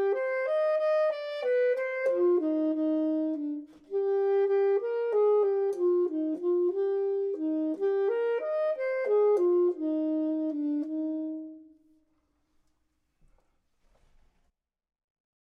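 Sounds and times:
clarinet: 0.0 - 12.0
saxophone: 0.0 - 12.0.

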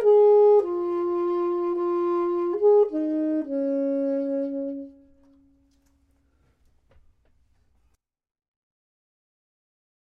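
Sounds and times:
saxophone: 0.0 - 5.6
clarinet: 0.0 - 5.7.

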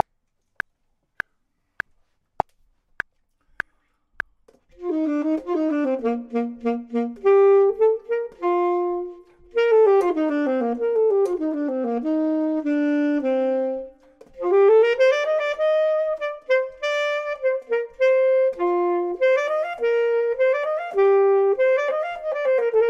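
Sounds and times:
clarinet: 4.7 - 22.8
saxophone: 4.7 - 22.8.

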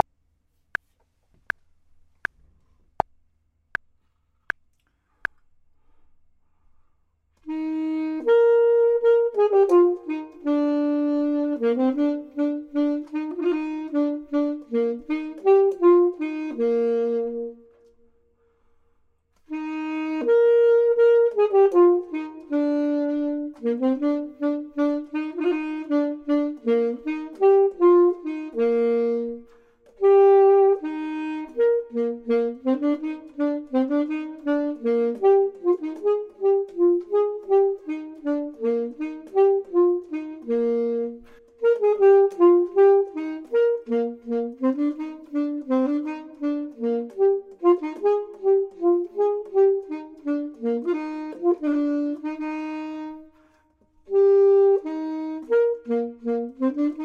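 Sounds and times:
clarinet: 7.4 - 18.2, 19.4 - 57.0
saxophone: 7.4 - 57.0.

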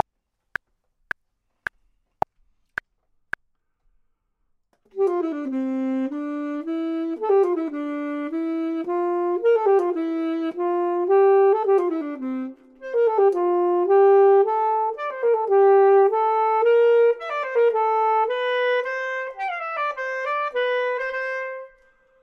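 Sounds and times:
clarinet: 4.9 - 22.2
saxophone: 4.9 - 22.2.

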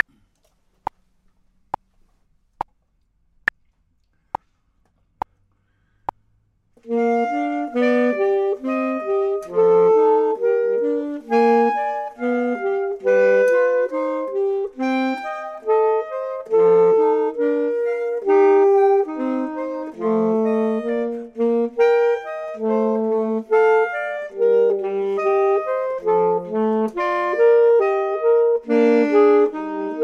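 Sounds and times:
clarinet: 6.8 - 30.0
saxophone: 6.8 - 30.0.

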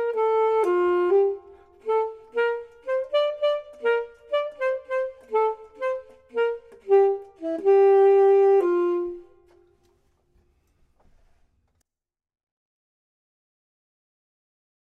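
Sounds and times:
clarinet: 0.0 - 10.1
saxophone: 0.0 - 10.1.

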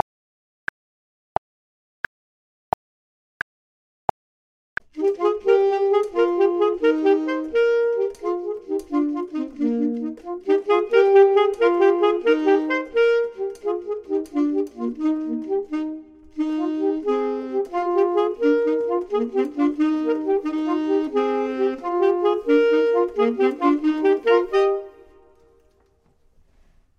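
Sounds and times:
clarinet: 5.0 - 25.8
saxophone: 5.0 - 25.9.

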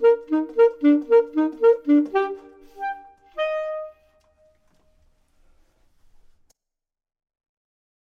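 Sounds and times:
saxophone: 0.0 - 4.6
clarinet: 0.0 - 4.7.

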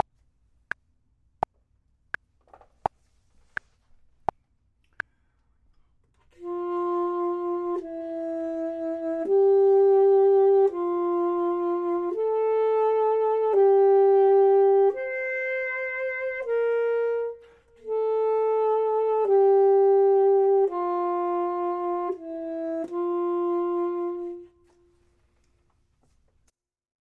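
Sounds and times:
saxophone: 6.1 - 25.6
clarinet: 6.2 - 25.6.

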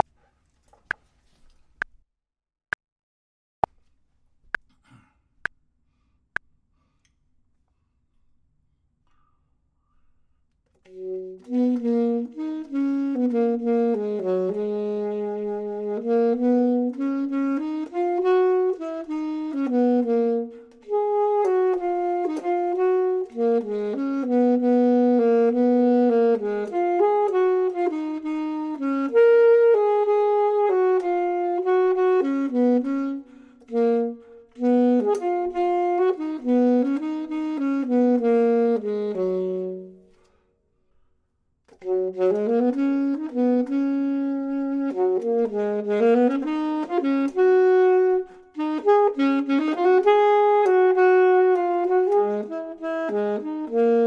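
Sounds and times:
saxophone: 10.7 - 40.5, 41.7 - 54.0
clarinet: 10.8 - 40.4, 41.7 - 54.0.

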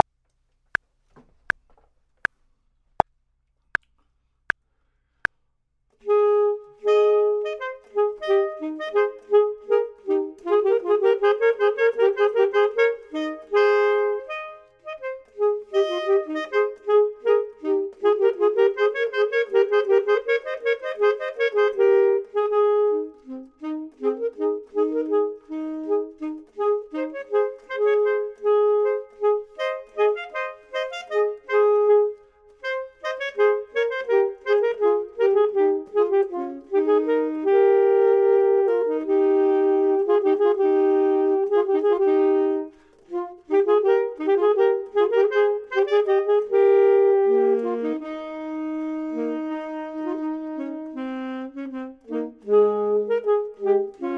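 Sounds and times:
clarinet: 6.0 - 54.1
saxophone: 6.0 - 54.1.

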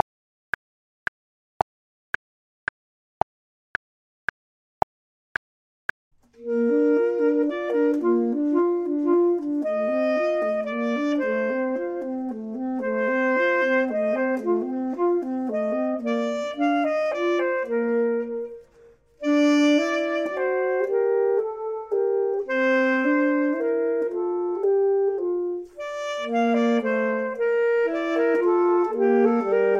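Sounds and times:
clarinet: 6.4 - 29.7
saxophone: 6.4 - 29.7.

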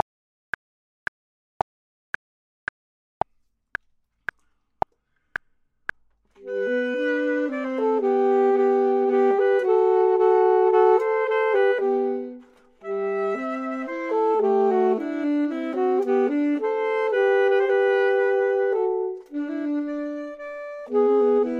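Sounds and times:
clarinet: 6.4 - 21.5
saxophone: 6.4 - 21.5.

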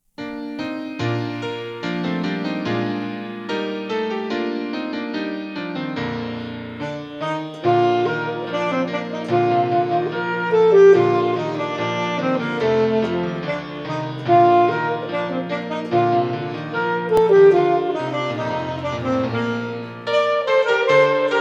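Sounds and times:
gavotte music: 0.2 - 21.3.

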